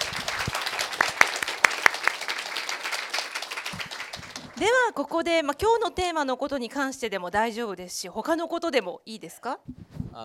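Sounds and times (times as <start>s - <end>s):
audience applause: 0.0s - 4.8s
speech: 4.6s - 10.2s.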